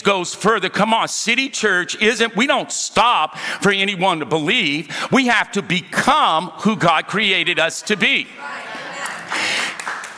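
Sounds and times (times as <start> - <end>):
speech: 0.0 - 8.6
faint murmur of voices: 7.1 - 10.1
light golf clap from audience: 9.0 - 10.1.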